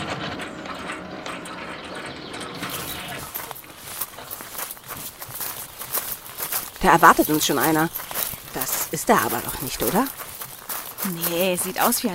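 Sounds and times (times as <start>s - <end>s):
gate opening to a house in a radio drama: 0.0s - 4.4s
irregular crunching footsteps: 2.5s - 12.1s
speech: 6.8s - 10.2s, 11.0s - 12.1s.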